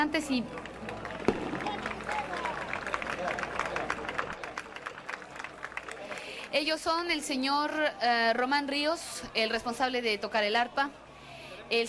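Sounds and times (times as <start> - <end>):
speech: 0.0 - 1.0, 6.5 - 11.0
audience applause: 0.5 - 6.5.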